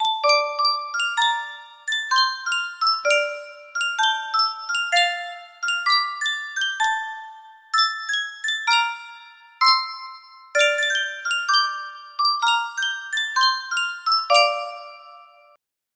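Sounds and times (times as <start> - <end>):
Sankyo music box: 0.0 - 15.6.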